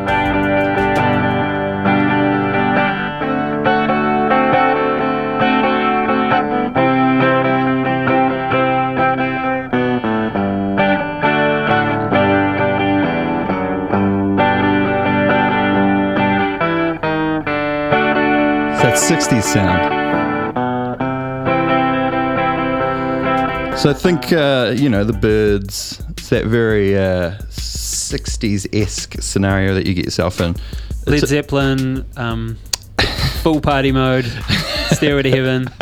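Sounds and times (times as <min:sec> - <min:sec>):
Rickenbacker 360 electric 12-string guitar playing: 0:00.0 - 0:26.1
speech: 0:19.0 - 0:20.0, 0:23.8 - 0:32.6, 0:33.4 - 0:35.8
laughter: 0:34.2 - 0:35.8.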